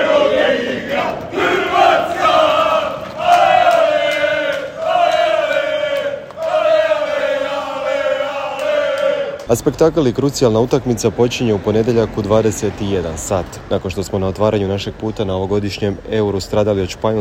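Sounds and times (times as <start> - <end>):
Croatia football fans singing a supporters' chant in Leipzig: 0.0 - 9.4
speech: 9.5 - 17.2.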